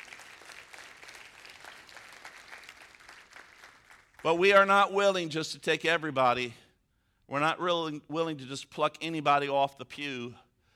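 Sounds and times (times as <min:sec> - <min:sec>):
audience applause: 0:00.0 - 0:04.2
speech: 0:04.2 - 0:06.6, 0:07.3 - 0:10.4.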